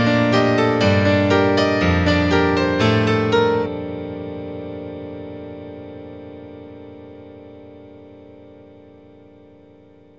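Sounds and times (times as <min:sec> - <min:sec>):
music interlude: 0:00.0 - 0:03.7.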